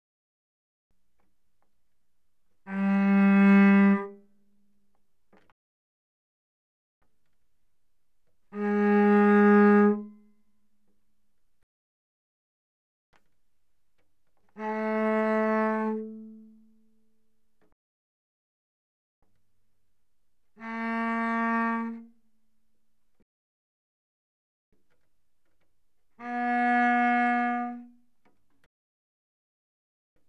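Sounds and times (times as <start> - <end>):
cello bowed arco mezzo-forte on the C string: 2.4 - 4.4, 8.4 - 10.3, 14.4 - 17.0, 20.6 - 22.2, 26.1 - 28.0.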